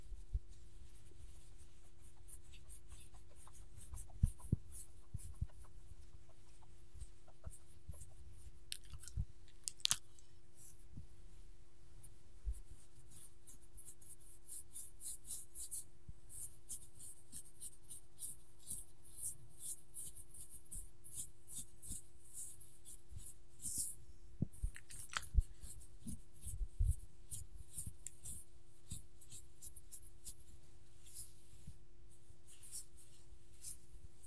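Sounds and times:
scratching and rustling while petting a dog: 0.0 - 10.9, 15.5 - 34.2
dog licking and chewing clicks: 8.7 - 10.0.

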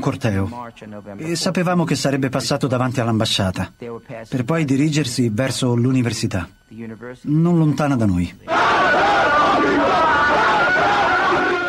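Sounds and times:
speech: 0.0 - 11.0
crowd of protesters shouting: 8.5 - 11.6.

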